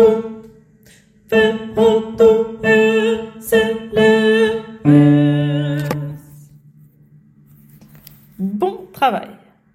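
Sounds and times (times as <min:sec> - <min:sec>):
tenor voices singing: 0:00.0 - 0:00.6, 0:01.3 - 0:06.4.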